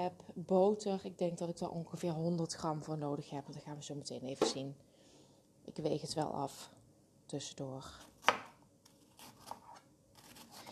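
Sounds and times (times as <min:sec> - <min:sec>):
speech: 0:00.0 - 0:04.9, 0:05.7 - 0:08.4
knife slicing cabbage into thin strips: 0:08.0 - 0:10.7.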